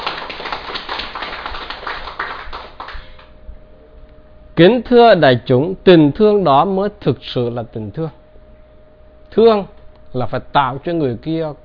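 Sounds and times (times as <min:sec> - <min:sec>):
audience applause: 0:00.0 - 0:03.3
speech: 0:04.6 - 0:08.2, 0:09.3 - 0:11.6.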